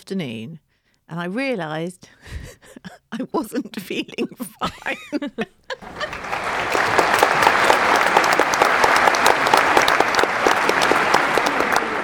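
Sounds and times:
speech: 0:00.0 - 0:06.8
laughter: 0:02.3 - 0:12.0
applause: 0:05.8 - 0:12.0.

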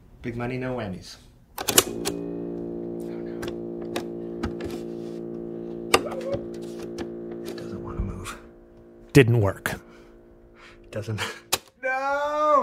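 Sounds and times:
speech: 0:00.2 - 0:02.5, 0:09.2 - 0:09.8, 0:10.9 - 0:11.4
tape player playing a hand-repaired cassette: 0:01.7 - 0:11.5.

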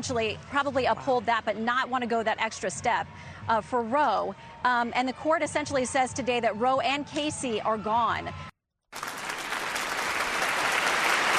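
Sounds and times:
speech: 0:00.0 - 0:08.5
round of applause: 0:08.9 - 0:11.3.

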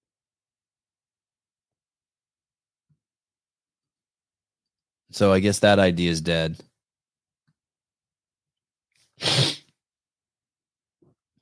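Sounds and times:
speech: 0:05.1 - 0:06.7
sniffle: 0:09.0 - 0:09.8.

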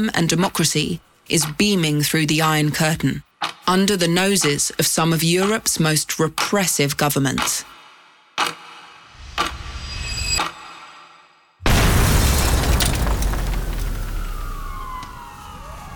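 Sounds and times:
speech: 0:00.0 - 0:07.8
twenty kilograms of plastic explosive blast at the Radio Free Europe building: 0:11.6 - 0:15.0.

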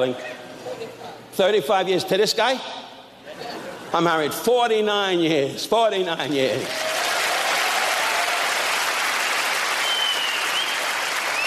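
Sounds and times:
speech: 0:00.0 - 0:00.3, 0:01.4 - 0:02.8, 0:03.9 - 0:06.9
audience applause: 0:06.6 - 0:11.4.

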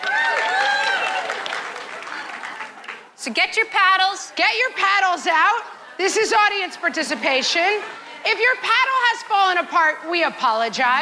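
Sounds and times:
audience applause during an audience-participation segment of a live show: 0:00.0 - 0:03.1
faint crowd voices: 0:00.0 - 0:10.9
speech: 0:03.2 - 0:10.9.

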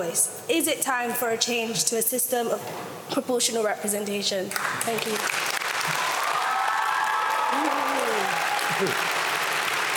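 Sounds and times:
speech: 0:00.0 - 0:05.4, 0:08.8 - 0:09.1
audience applauding: 0:04.6 - 0:09.9
audience cheering: 0:05.8 - 0:09.9.

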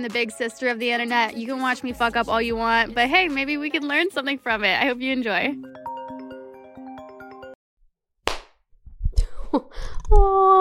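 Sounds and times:
speech: 0:00.0 - 0:05.7, 0:09.5 - 0:10.5
tinkly rhythmic tones: 0:05.6 - 0:07.6
loud sharp hand clap near microphone: 0:08.3 - 0:08.6.

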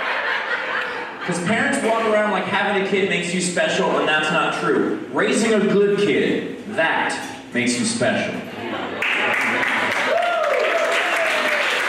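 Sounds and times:
laughter: 0:00.0 - 0:01.9, 0:08.7 - 0:10.1
speech: 0:01.3 - 0:08.8
audience applause: 0:09.0 - 0:11.8.

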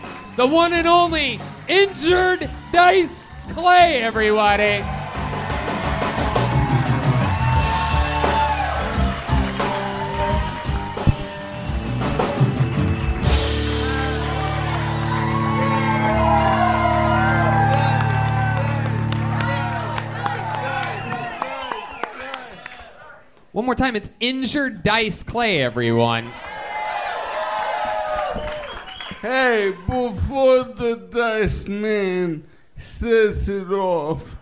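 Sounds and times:
crowd cheering and applauding: 0:00.0 - 0:23.4, 0:26.2 - 0:30.2
speech: 0:00.4 - 0:05.0, 0:23.6 - 0:26.5, 0:29.2 - 0:34.3
shouts and whoops: 0:04.6 - 0:11.7, 0:13.7 - 0:23.0, 0:26.3 - 0:30.2.

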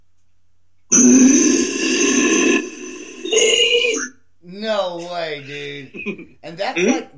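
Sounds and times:
person imitating a low growl: 0:00.9 - 0:03.5
speech: 0:06.1 - 0:07.1.

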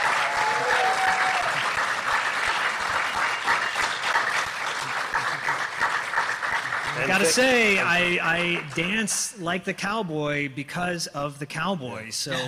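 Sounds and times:
audience round of applause: 0:00.0 - 0:09.1
speech: 0:07.0 - 0:12.4.

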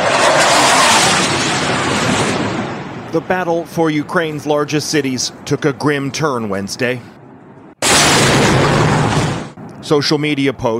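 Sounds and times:
explosion from Russian jets bombing Kharkiv, Ukraine: 0:00.0 - 0:03.2, 0:07.8 - 0:09.6
speech: 0:03.1 - 0:07.2, 0:09.9 - 0:10.7.

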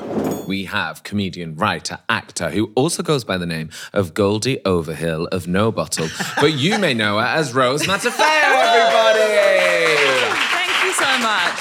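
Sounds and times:
speech: 0:00.5 - 0:10.4
laughter: 0:06.0 - 0:10.4
applause at a dinner table: 0:07.9 - 0:11.5.

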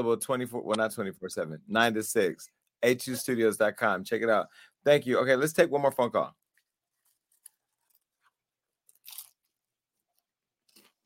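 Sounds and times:
speech: 0:00.0 - 0:06.4
person eating popcorn: 0:08.8 - 0:09.7, 0:10.6 - 0:11.0.

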